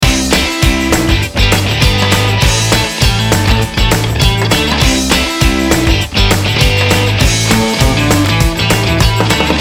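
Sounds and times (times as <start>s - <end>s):
indie garage loop: 0.0s - 9.5s.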